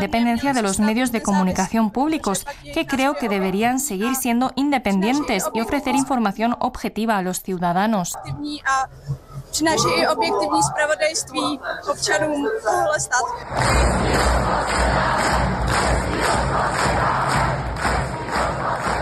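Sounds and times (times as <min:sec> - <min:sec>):
speech: 0:00.0 - 0:17.1
protesters singing a national anthem: 0:11.4 - 0:18.9
protest crowd cheering and applauding: 0:13.5 - 0:18.9.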